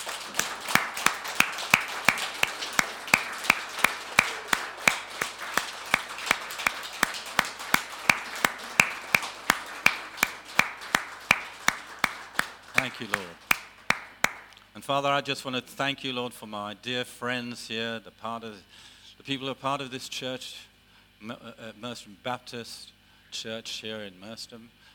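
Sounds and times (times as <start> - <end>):
large group clapping together in a steady rhythm: 0.0 - 14.6
speech: 13.0 - 13.4, 14.9 - 24.9.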